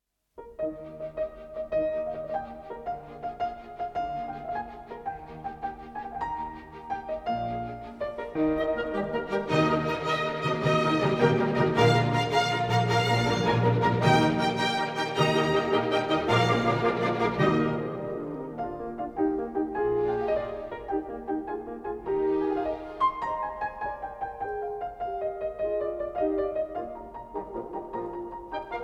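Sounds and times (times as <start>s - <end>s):
piano concerto rondo: 0.4s - 28.8s.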